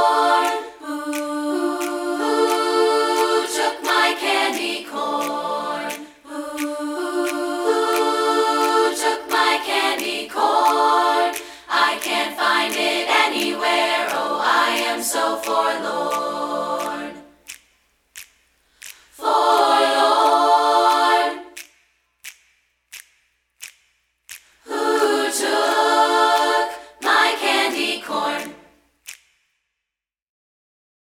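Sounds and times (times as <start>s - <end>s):
a cappella singing: 0.0s - 17.5s, 19.1s - 21.6s, 24.6s - 28.8s.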